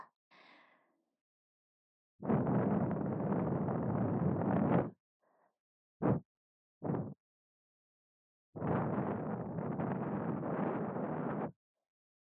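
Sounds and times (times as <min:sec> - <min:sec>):
blowing into left ear: 0:02.2 - 0:04.9, 0:08.6 - 0:11.5.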